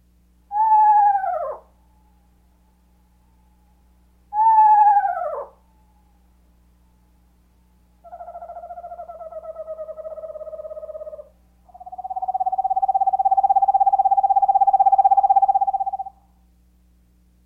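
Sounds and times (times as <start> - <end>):
Eastern Screech Owl quavering whinnies: 0.5 - 1.8, 4.3 - 5.6, 8.0 - 16.2
Eastern Screech Owl monotone trill: 0.5 - 16.4.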